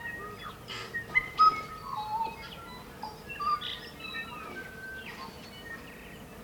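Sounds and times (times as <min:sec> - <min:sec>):
tui song with clicks, bell-like whistles and wheezy rasps in New Zealand: 0:01.1 - 0:03.8.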